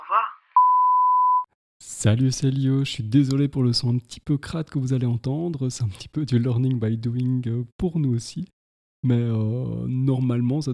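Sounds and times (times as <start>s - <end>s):
voicemail beep before recording message: 0.6s - 1.5s
speech: 2.0s - 10.7s.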